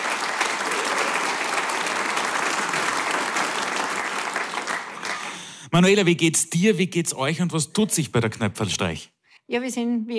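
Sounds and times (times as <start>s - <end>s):
audience applause: 0.0s - 5.6s
speech: 5.7s - 10.1s.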